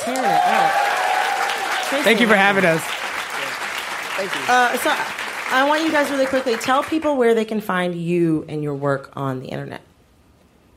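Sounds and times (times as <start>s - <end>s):
speech: 0.0s - 0.8s, 1.9s - 2.9s, 4.2s - 9.9s
voices and cheers: 0.0s - 6.6s
audience applause: 0.0s - 7.1s.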